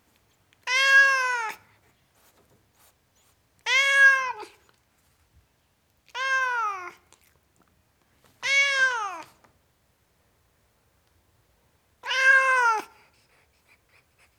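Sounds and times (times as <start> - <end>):
tom cat meowing: 0.6 - 1.6, 3.7 - 4.6, 6.1 - 7.0, 8.4 - 9.3, 12.0 - 12.9.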